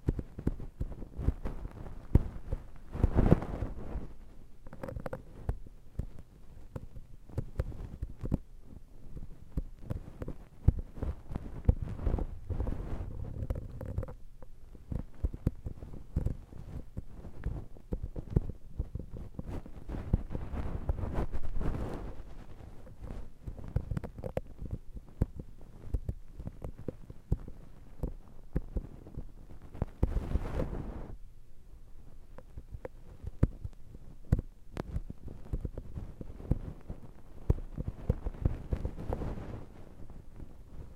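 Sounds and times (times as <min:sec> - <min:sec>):
ear massage rubbing on the right side: 0:00.0 - 0:31.2, 0:32.1 - 0:40.9
faint hum: 0:00.0 - 0:40.9.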